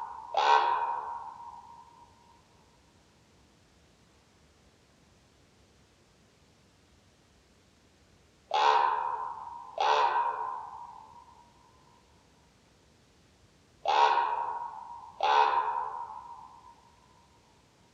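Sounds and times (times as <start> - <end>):
common raven croaking: 0.0 - 2.1, 8.5 - 11.5, 13.8 - 17.0.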